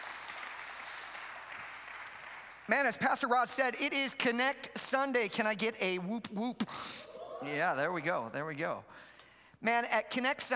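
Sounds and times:
audience applause: 0.0s - 2.7s
speech: 2.7s - 10.5s.

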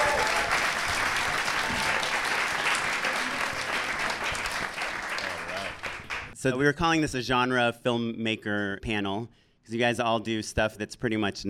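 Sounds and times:
audience applause: 0.0s - 6.4s
speech: 6.4s - 11.4s.

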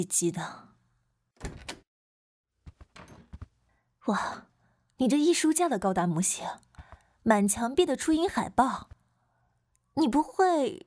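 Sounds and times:
speech: 0.0s - 0.7s, 4.0s - 9.0s, 10.0s - 10.8s
door being opened: 1.4s - 1.9s, 2.8s - 3.4s.

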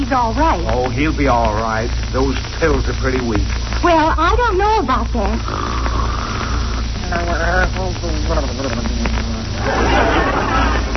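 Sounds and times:
steady hiss: 0.0s - 10.9s
speech: 0.1s - 6.0s, 7.1s - 10.2s
man snoring: 5.4s - 6.9s
laughter: 8.3s - 10.9s.

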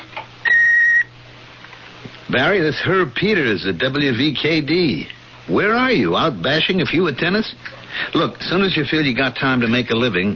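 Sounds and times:
answering machine beep: 0.4s - 1.1s
speech: 2.3s - 10.3s.

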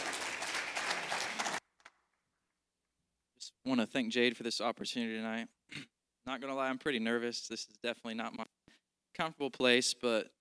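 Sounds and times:
audience applause and hand clapping: 0.0s - 1.6s
speech: 3.6s - 8.6s, 9.2s - 10.3s.

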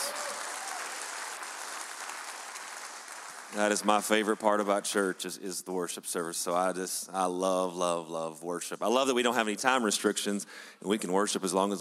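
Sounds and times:
audience applause: 0.0s - 5.2s
speech: 3.5s - 11.7s.

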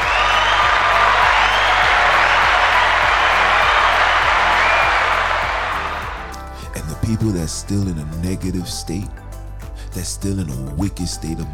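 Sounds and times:
whoops and cheers: 0.0s - 6.6s
large crowd applause: 0.0s - 6.7s
speech: 7.2s - 9.2s, 10.0s - 11.5s.

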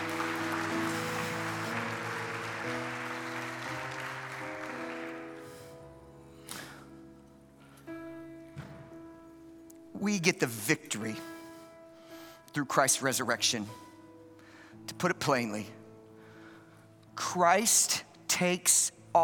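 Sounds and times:
audience applause: 0.0s - 5.5s
speech: 10.0s - 11.3s, 12.5s - 13.9s, 14.9s - 15.8s, 17.3s - 19.2s.

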